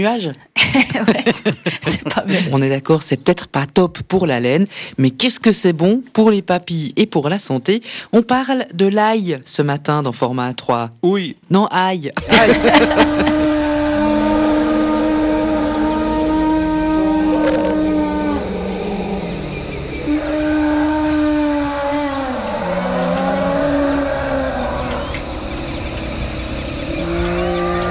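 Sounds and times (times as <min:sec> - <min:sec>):
speech: 0:00.0 - 0:13.6
laughter: 0:00.6 - 0:02.6, 0:12.2 - 0:13.8
elephants calling: 0:12.2 - 0:27.8.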